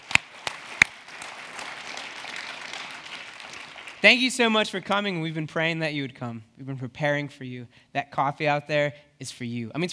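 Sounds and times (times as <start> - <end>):
crowd applause: 0.0 - 4.0
sharp claps: 0.0 - 4.2
speech: 4.0 - 9.9.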